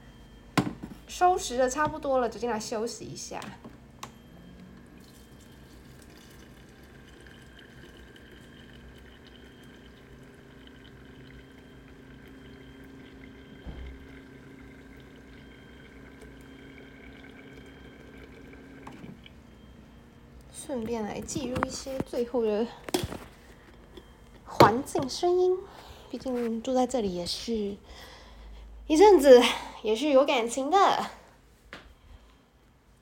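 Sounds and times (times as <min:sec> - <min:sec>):
speech: 0:01.1 - 0:03.7, 0:20.7 - 0:23.1, 0:24.8 - 0:28.1, 0:28.9 - 0:31.2
water pouring into a teapot to brew tea: 0:04.9 - 0:19.3.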